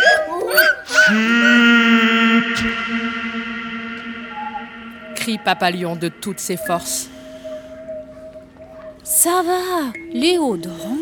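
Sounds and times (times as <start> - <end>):
family of monkeys howling: 0.0 - 6.7
speech: 5.3 - 7.2, 9.2 - 11.0.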